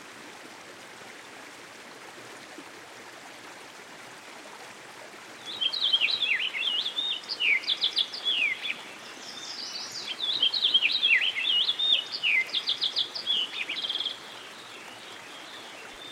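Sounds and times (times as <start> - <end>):
American goldfinch singing: 5.5 - 14.6.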